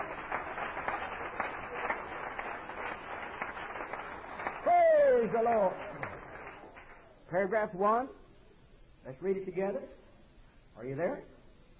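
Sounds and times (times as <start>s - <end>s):
audience clapping: 0.0s - 7.1s
speech: 5.3s - 5.9s, 7.3s - 8.2s, 9.0s - 10.0s, 10.8s - 11.3s.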